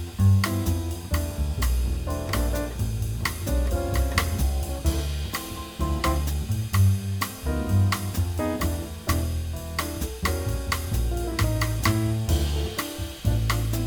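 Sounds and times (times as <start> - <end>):
bossa nova jazz rhythm section: 0.0 - 13.8.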